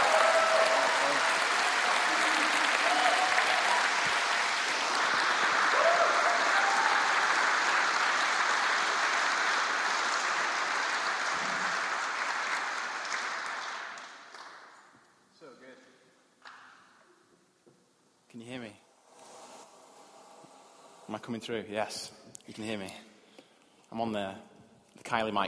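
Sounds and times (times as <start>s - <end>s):
audience clapping: 0.0s - 14.9s
speech: 21.3s - 23.1s, 23.9s - 24.5s, 25.1s - 25.4s.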